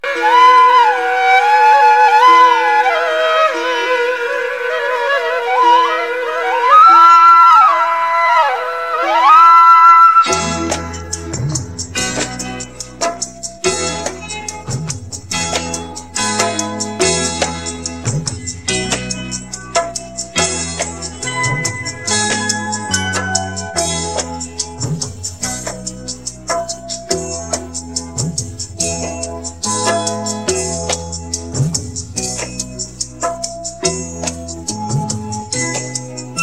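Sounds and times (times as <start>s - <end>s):
instrumental music: 0.0s - 36.4s.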